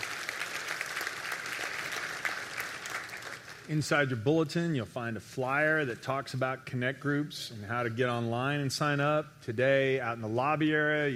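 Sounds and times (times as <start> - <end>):
audience applause: 0.0 - 3.7
speech: 3.7 - 11.1.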